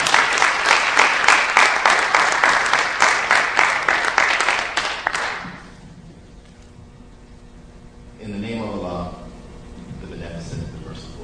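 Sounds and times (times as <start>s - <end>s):
audience applause: 0.0s - 5.8s.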